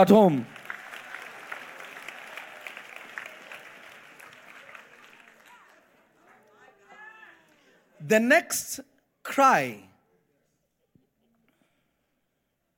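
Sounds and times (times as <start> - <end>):
speech: 0.0 - 0.5, 8.0 - 9.9
audience clapping: 0.0 - 7.6
voices calling out and cheering: 4.4 - 8.5.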